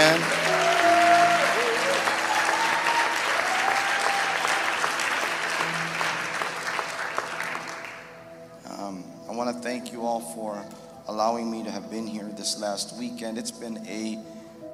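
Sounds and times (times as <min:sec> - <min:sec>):
audience applause: 0:00.0 - 0:08.1
speech: 0:09.9 - 0:14.4.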